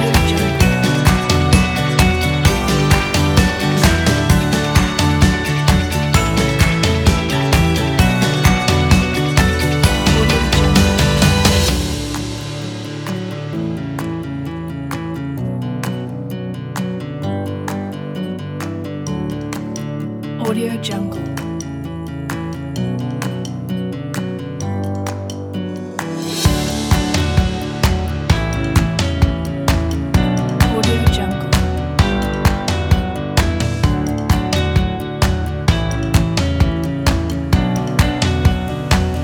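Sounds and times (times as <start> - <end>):
drum kit: 0.0 - 15.1, 24.9 - 39.2
upbeat acoustic indie folk music: 0.0 - 39.2.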